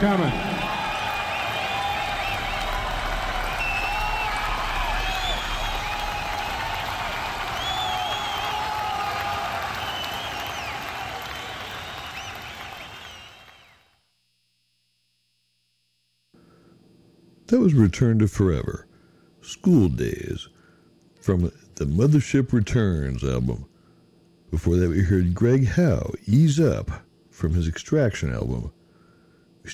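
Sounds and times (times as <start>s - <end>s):
speech: 0.0s - 0.5s, 17.5s - 20.6s, 21.2s - 23.7s, 24.5s - 28.8s
concert crowd applauding and cheering: 0.0s - 13.9s
scattered whistles and shouts: 0.0s - 13.9s.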